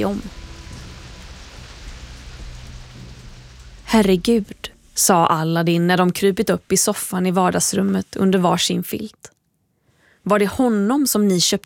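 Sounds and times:
speech: 0.0s - 0.4s, 3.9s - 9.4s, 10.2s - 11.6s
heavy rain pouring down: 0.0s - 6.9s.

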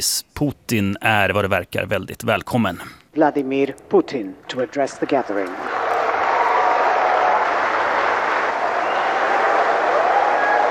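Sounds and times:
speech: 0.0s - 5.8s
BRICS business forum audience applause: 5.0s - 10.6s.

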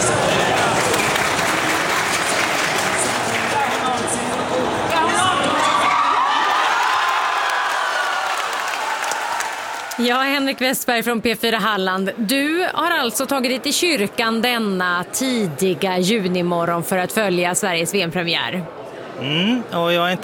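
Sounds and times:
crowd in Harplinge church cheering and clapping at Sweden's goal: 0.0s - 10.3s
speech: 10.1s - 20.2s.

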